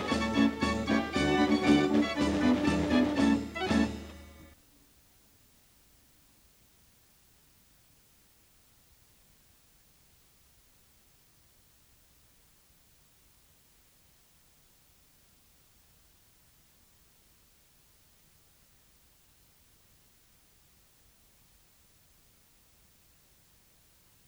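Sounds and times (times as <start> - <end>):
Dutch street barrel organ playing: 0.0 - 4.6.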